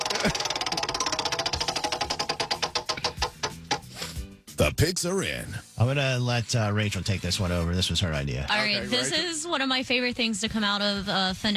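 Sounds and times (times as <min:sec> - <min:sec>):
prize wheel spinning with pointer clicking: 0:00.0 - 0:03.9
speech: 0:00.2 - 0:00.5, 0:04.6 - 0:11.5.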